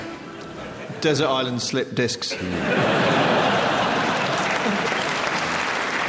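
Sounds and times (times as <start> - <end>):
laughter: 0.3 - 1.1, 2.3 - 5.7
speech: 1.0 - 3.2
audience clapping: 3.2 - 6.0.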